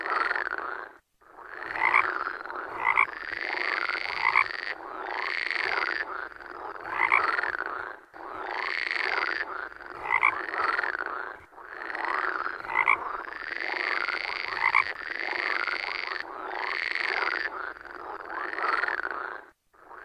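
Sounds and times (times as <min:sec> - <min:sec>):
frog croaking: 0:00.0 - 0:20.0.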